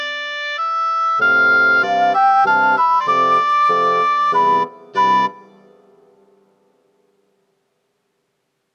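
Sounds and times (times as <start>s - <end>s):
wind quintet: 0.0s - 5.7s.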